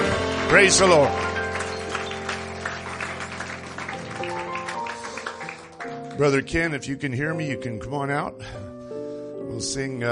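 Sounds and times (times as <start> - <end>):
audience clapping hands: 0.0 - 6.5
speech: 0.5 - 1.3, 6.2 - 8.6, 9.5 - 10.1.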